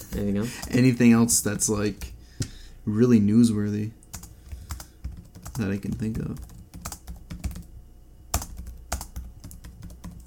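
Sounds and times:
speech: 0.2s - 2.2s, 2.9s - 4.0s, 5.6s - 6.5s
fingers typing notes on a computer keyboard: 4.1s - 7.7s, 8.3s - 10.2s.

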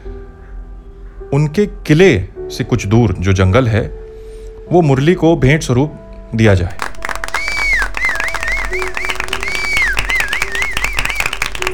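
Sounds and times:
speech: 1.3s - 4.0s, 4.7s - 6.8s
crowd applause: 6.7s - 11.7s.

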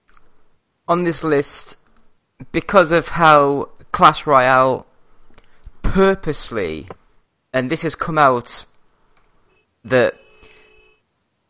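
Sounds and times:
speech: 0.9s - 1.8s, 2.4s - 4.9s, 5.9s - 7.0s, 7.6s - 8.7s, 9.8s - 10.2s
car horn honking outside: 9.5s - 11.0s.

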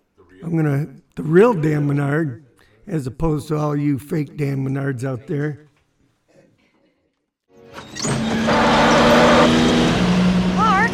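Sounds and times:
speech: 0.4s - 5.7s
car engine sound effect in a comedy skit: 7.7s - 10.9s.

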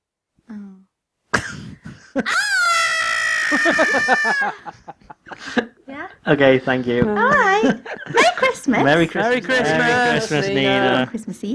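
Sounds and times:
laughter: 1.8s - 5.8s, 7.4s - 10.8s
speech: 2.1s - 2.5s, 3.5s - 11.5s
person imitating a scream: 2.3s - 4.6s.

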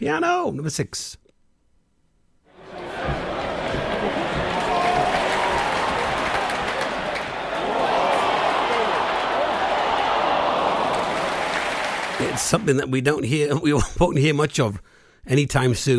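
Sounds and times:
speech: 0.0s - 1.2s, 12.3s - 15.9s
crowd of football supporters roaring and murmuring: 2.5s - 12.7s.

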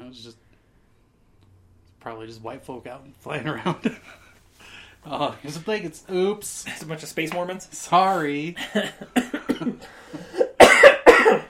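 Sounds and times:
speech: 0.1s - 0.4s, 2.0s - 4.2s, 5.0s - 10.4s
person coughing and choking after laughing hard: 8.8s - 11.4s.

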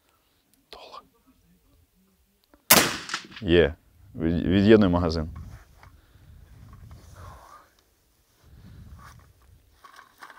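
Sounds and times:
rifle shots at shooting practice: 2.7s - 3.5s
speech: 3.4s - 5.4s.

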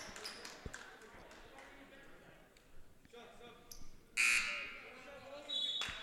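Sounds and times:
referee's whistle at basketball game: 4.2s - 4.8s, 5.5s - 6.0s.

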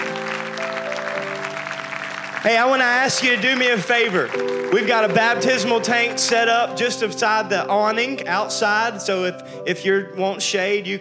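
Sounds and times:
audience clapping and shouting: 0.0s - 6.8s
speech: 2.4s - 10.9s.

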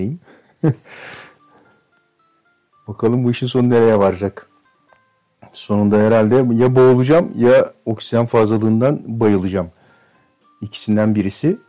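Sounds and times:
speech: 0.0s - 1.3s, 2.9s - 4.5s, 5.6s - 9.8s, 10.6s - 11.6s
heavy breathing into the microphone: 0.2s - 1.8s, 9.8s - 10.3s.

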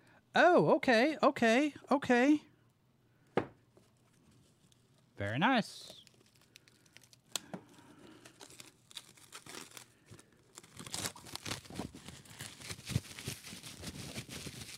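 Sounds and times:
speech: 0.4s - 2.5s, 5.2s - 6.0s
shrink wrap being torn and peeled off a package: 5.7s - 14.7s.

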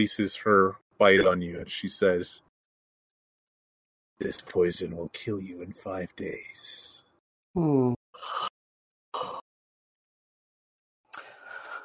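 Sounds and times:
speech: 0.0s - 2.4s, 4.2s - 6.9s, 7.6s - 8.5s
person yawning: 7.6s - 8.0s.

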